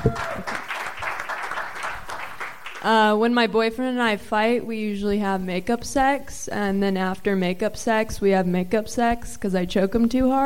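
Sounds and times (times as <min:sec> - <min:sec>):
audience clapping: 0:00.0 - 0:02.9
speech: 0:02.8 - 0:10.4.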